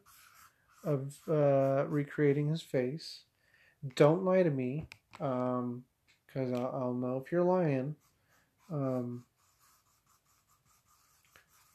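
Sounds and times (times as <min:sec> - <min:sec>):
pen or marker scratching across paper drawing a small puffy cloud: 0:00.0 - 0:02.0, 0:08.0 - 0:11.7
speech: 0:00.8 - 0:08.1, 0:08.7 - 0:09.3.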